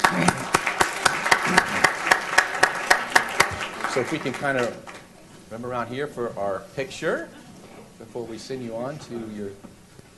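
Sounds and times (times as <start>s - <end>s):
hand claps for students at a county commission meeting: 0.0s - 5.1s
speech: 4.0s - 4.9s, 5.5s - 7.4s, 8.0s - 9.8s.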